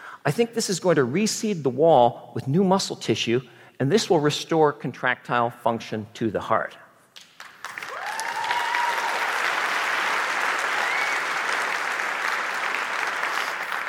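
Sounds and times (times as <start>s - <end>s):
speech: 0.2s - 6.8s
audience applause: 7.4s - 13.8s.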